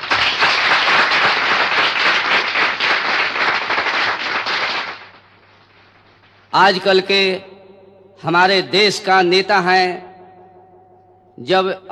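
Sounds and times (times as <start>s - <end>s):
audience applause: 0.0s - 5.4s
speech: 6.6s - 7.5s, 8.2s - 10.1s, 11.4s - 11.8s.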